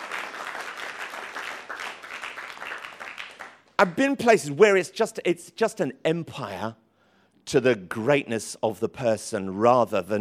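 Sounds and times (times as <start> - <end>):
audience applause: 0.0 - 3.6
speech: 3.8 - 6.8, 7.5 - 10.1.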